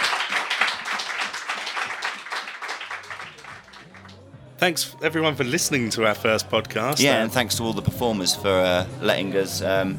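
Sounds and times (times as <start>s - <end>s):
audience clapping: 0.0s - 4.3s
speech: 4.6s - 9.9s.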